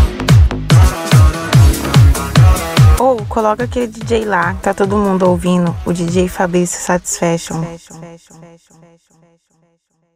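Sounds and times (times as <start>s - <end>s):
funk music from car sound system with open trunk: 0.0s - 6.4s.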